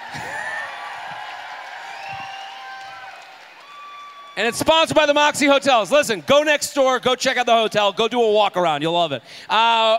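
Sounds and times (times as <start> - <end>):
crowd applauding: 0.0 - 5.5
speech: 4.4 - 9.9.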